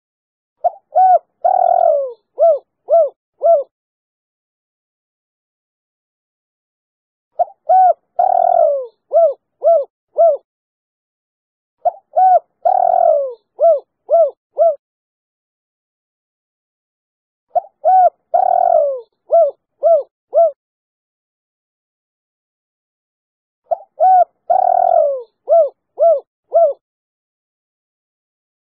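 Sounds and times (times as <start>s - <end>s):
spotted dove cooing: 0.6s - 3.7s, 7.4s - 10.5s, 11.8s - 14.8s, 17.5s - 20.6s, 23.7s - 26.8s.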